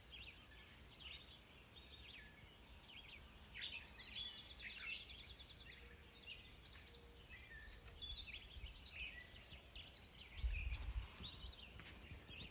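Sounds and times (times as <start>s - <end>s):
birds chirping and trilling around a house: 0.0s - 12.4s.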